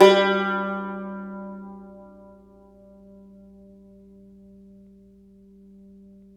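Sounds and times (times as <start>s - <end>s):
cumbus note: 0.0s - 3.3s.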